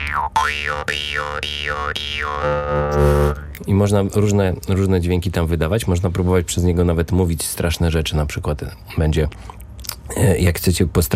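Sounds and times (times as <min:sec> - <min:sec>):
jaw harp twanging: 0:00.0 - 0:03.7
speech: 0:00.1 - 0:11.1.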